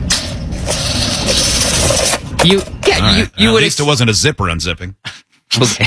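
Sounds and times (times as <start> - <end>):
tape measure rolling back up: 0.1 - 2.3
speech: 2.4 - 5.8.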